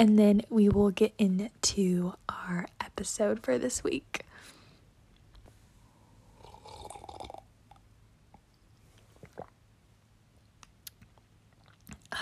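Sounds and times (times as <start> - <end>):
speech: 0.0 - 4.5
big slurping sip of hot peppermint tea: 6.4 - 7.4.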